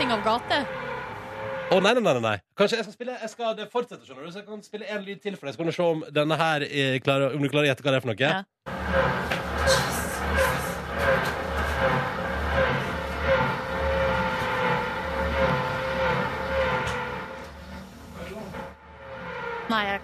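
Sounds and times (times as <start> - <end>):
speech: 0.0 - 0.9, 1.7 - 10.0
drilling noise from neighbour's renovation: 0.0 - 2.1, 8.7 - 20.0.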